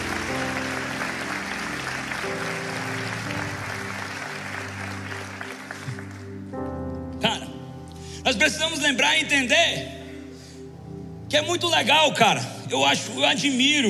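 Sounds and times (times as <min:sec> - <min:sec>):
audience applause: 0:00.0 - 0:06.6
sustained musical chords: 0:00.0 - 0:11.8
speech: 0:08.3 - 0:10.0, 0:11.3 - 0:13.8.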